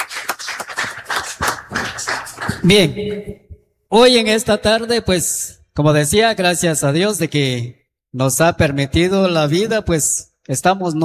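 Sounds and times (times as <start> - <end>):
audience applause: 0.0 - 2.8
speech: 2.6 - 11.0.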